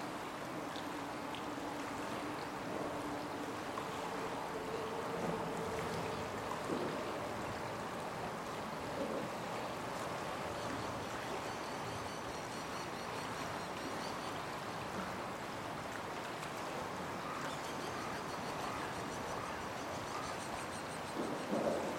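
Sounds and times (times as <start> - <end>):
river rushing under the Tomei Expressway overpass: 0.0 - 21.9
faint tonal hums: 0.1 - 11.8.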